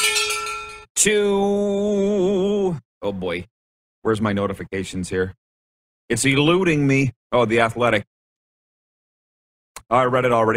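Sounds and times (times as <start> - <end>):
metallic bell rung for breaking news: 0.0 - 0.9
speech: 1.0 - 2.0, 2.7 - 5.4, 6.1 - 8.1, 9.9 - 10.5.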